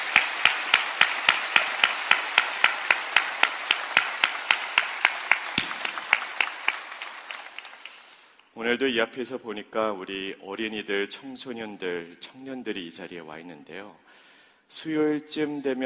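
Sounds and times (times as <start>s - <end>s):
audience applause: 0.0s - 8.4s
speech: 8.6s - 15.8s.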